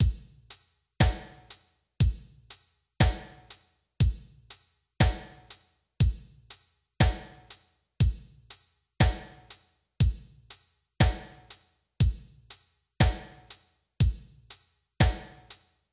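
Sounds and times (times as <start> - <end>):
drums: 0.0 - 15.8.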